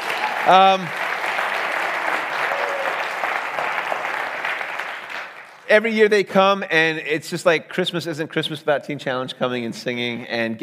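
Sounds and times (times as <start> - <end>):
audience applause: 0.0 - 5.7
speech: 0.5 - 1.0, 5.7 - 10.6
person whooping: 2.4 - 3.1.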